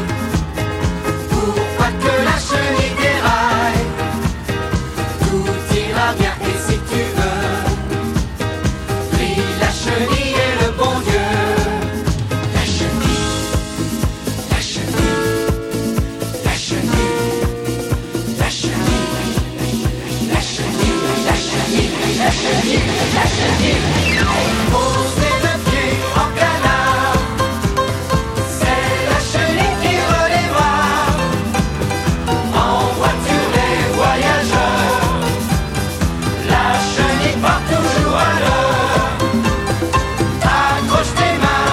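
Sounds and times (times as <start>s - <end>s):
accordion musette music: 0.0s - 41.7s.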